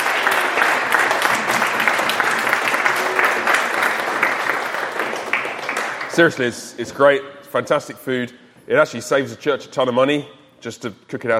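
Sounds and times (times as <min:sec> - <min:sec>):
audience applause: 0:00.0 - 0:06.6
speech: 0:06.2 - 0:11.3.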